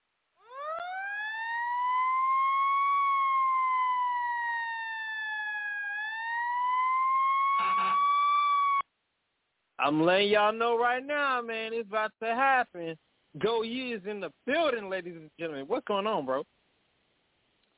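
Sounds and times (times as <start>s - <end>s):
fire truck siren: 0.4s - 8.8s
speech: 9.8s - 16.6s.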